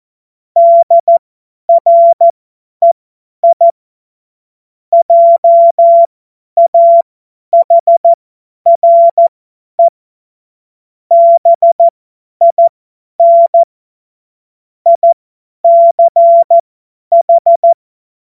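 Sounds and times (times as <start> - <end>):
CW Morse code beeps: 0.6 - 3.7, 5.0 - 9.9, 11.1 - 13.7, 14.9 - 17.8.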